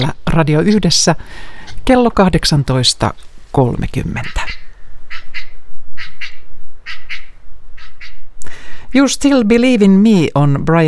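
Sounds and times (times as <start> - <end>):
speech: 0.0 - 4.6, 8.9 - 10.8
northern shoveler duck calling: 4.2 - 8.4.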